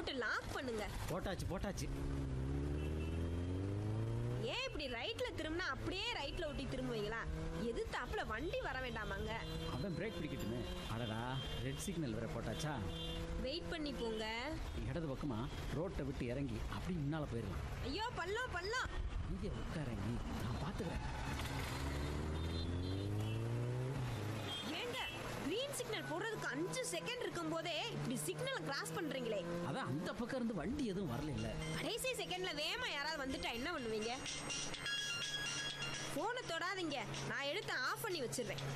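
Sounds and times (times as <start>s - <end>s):
speech: 0.1s - 2.4s, 4.4s - 21.4s, 25.8s - 34.9s, 36.2s - 38.7s
motorbike revving and riding off: 1.8s - 4.8s, 6.6s - 8.1s, 8.8s - 10.8s, 11.4s - 14.1s, 20.0s - 32.4s.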